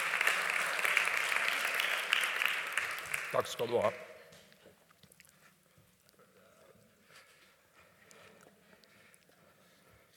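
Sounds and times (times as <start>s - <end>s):
audience applause: 0.0s - 4.1s
speech: 3.3s - 4.1s.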